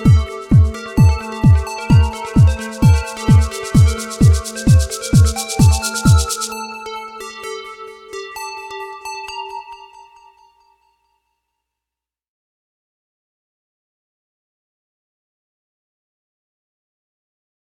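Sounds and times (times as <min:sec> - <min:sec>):
ambience: 0:00.0 - 0:08.1.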